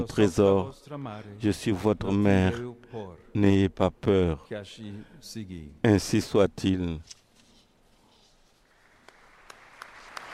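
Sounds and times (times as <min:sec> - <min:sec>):
speech: 0:00.0 - 0:07.2
quiet crowd applause: 0:08.8 - 0:10.3.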